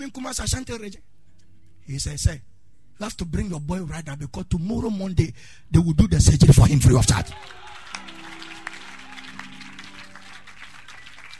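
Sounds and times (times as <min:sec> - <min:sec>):
speech: 0:00.0 - 0:01.2, 0:01.8 - 0:07.8
audience clapping: 0:07.0 - 0:11.3.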